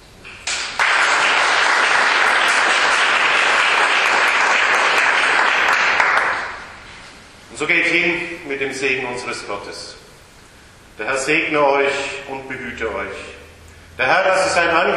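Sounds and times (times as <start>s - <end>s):
audience applause: 0.4s - 6.7s
speech: 7.6s - 10.0s, 11.0s - 13.3s, 14.0s - 14.9s.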